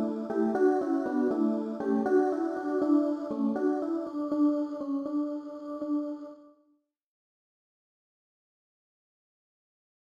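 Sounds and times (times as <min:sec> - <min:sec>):
music playback: 0:00.0 - 0:04.9.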